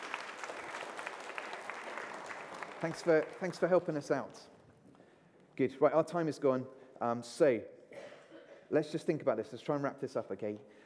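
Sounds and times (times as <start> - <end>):
group clapping: 0.0 - 4.4
speech: 2.8 - 4.5, 5.6 - 7.8, 8.7 - 10.8.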